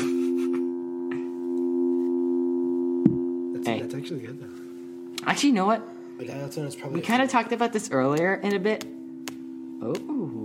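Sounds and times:
telephone dial tone: 0.0 - 3.9
speech: 3.7 - 4.6, 5.2 - 9.0, 9.8 - 10.4.

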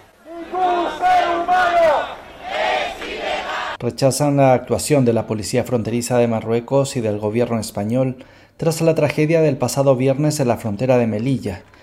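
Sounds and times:
protest crowd chanting: 0.0 - 3.8
speech: 3.8 - 11.8.

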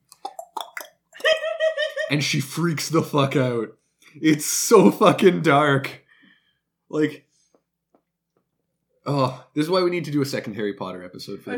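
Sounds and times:
person imitating gallopy clicking with tongue clicks: 0.1 - 1.0
laughter: 1.2 - 2.6
speech: 2.1 - 6.0, 6.9 - 7.2, 9.0 - 11.5.

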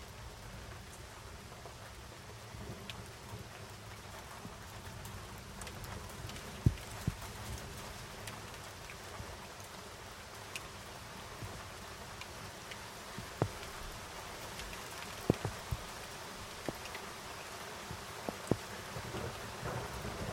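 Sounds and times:
steady rain outside a window in the French Alps: 0.0 - 20.3
sharp drips and taps: 5.6 - 9.0, 11.3 - 19.3.

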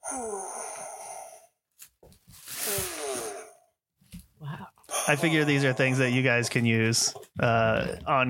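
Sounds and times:
female sighs from a sigh sound-effect machine: 0.0 - 1.2, 2.6 - 3.6, 4.4 - 5.0
speech: 0.1 - 0.6, 5.1 - 8.2.

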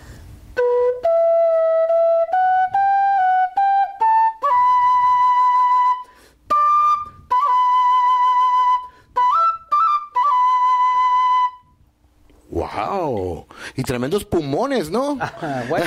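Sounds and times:
quena Andean flute being played: 0.5 - 11.8
speech: 13.8 - 15.8
laughter: 15.1 - 15.8.

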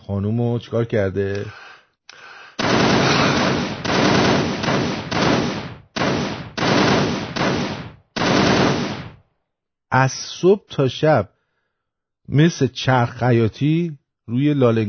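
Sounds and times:
speech: 0.1 - 1.6, 9.9 - 11.3, 12.3 - 14.8
machine gun fire in sustained bursts: 2.6 - 9.2.

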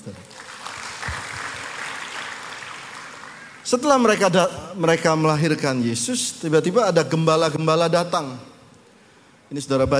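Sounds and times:
speech: 0.0 - 0.3, 3.7 - 8.5, 9.5 - 9.9
audience applause: 0.2 - 3.6.

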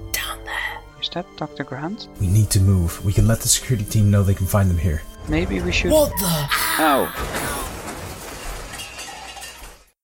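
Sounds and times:
speech: 1.0 - 7.6
Humvee crashing sideways into a tree: 7.2 - 9.8.

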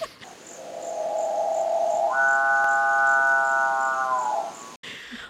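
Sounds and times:
odd bird call with buzzy wails and growl-like stretch: 0.7 - 4.8.

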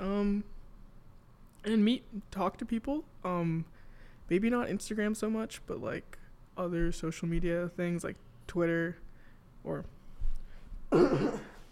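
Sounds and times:
speech: 1.7 - 9.0, 9.6 - 10.0, 10.9 - 11.5
sneeze: 10.9 - 11.6.

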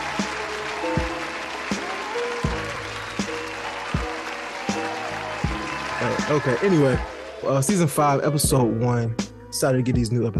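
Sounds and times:
clap sound: 0.0 - 7.9
speech: 0.2 - 0.4, 6.0 - 10.3.

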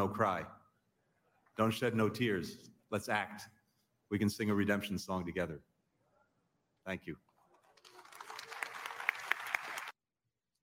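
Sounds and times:
speech: 0.0 - 0.6, 1.6 - 5.7, 6.9 - 7.3
crowd cheering and applause: 7.7 - 10.0.

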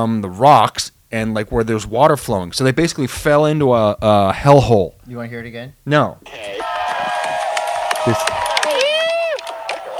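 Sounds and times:
speech: 0.0 - 6.6, 8.0 - 8.5
crowd clapping and cheering: 6.3 - 9.9.

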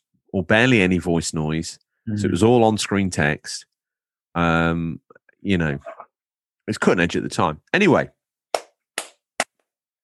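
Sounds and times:
speech: 0.3 - 3.7, 4.4 - 6.0, 6.7 - 8.2
hand clapping: 8.5 - 9.6.

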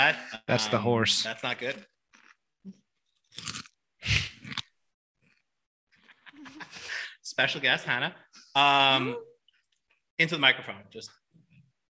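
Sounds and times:
speech: 0.0 - 1.9, 7.3 - 9.3, 10.2 - 11.2
crunching a barbecue chip: 3.2 - 3.8.

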